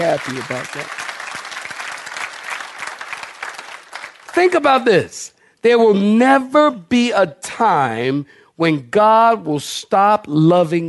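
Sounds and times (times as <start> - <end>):
audience clapping hands: 0.0 - 5.2
speech: 0.1 - 1.4, 4.4 - 10.8.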